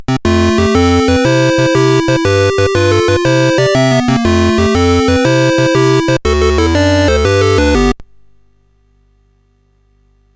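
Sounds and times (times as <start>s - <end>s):
SID CSG8580R5 chip music: 0.0s - 8.0s.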